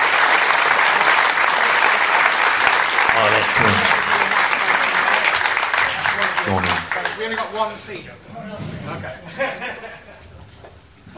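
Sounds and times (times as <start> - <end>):
audience applause: 0.0 - 7.8
laughter: 3.0 - 7.4, 8.9 - 10.3
speech: 3.2 - 4.0, 6.5 - 10.0.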